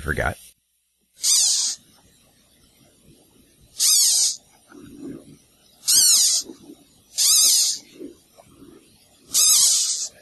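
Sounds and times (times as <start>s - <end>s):
caterpillar squeaking noise: 1.2s - 1.8s, 3.8s - 10.2s.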